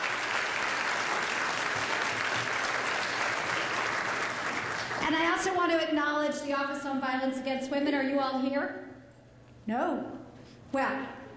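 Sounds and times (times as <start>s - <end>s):
audience applause: 0.0s - 5.2s
speech: 5.1s - 8.9s, 9.6s - 11.1s.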